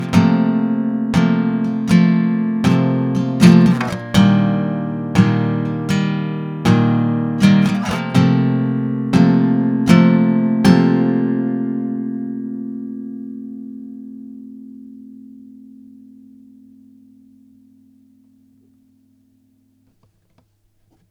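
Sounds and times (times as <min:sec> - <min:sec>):
guitar chords in G minor: 0:00.0 - 0:19.8.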